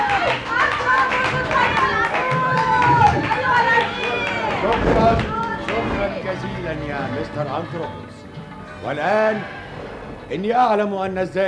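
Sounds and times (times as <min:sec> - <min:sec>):
crowd cheering during a stage play: 0:00.0 - 0:06.9, 0:08.6 - 0:10.3
scattered clapping: 0:00.0 - 0:07.7
speech: 0:07.2 - 0:08.2, 0:08.8 - 0:09.6, 0:10.3 - 0:11.4.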